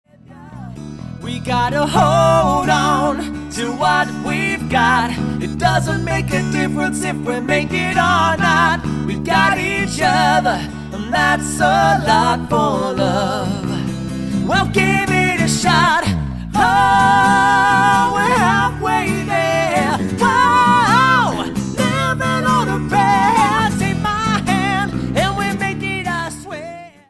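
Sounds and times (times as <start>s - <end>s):
acoustic duo playing live: 0.1s - 27.0s.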